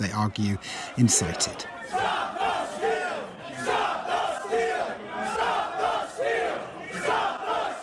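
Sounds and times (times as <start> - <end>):
speech: 0.0 - 2.4
crowd of rioters shouting and chanting during the attack on the U.S. Capitol: 0.0 - 7.8.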